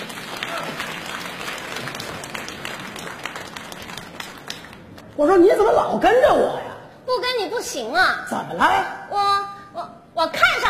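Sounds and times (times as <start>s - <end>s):
audience applause on a variety-show stage: 0.0s - 5.0s
speech: 5.2s - 9.3s, 10.2s - 10.6s.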